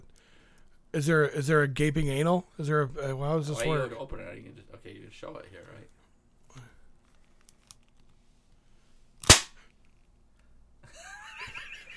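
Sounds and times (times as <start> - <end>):
speech: 0.9 - 6.0
toy cap gun firing caps: 9.2 - 9.6
laughter: 10.8 - 11.9.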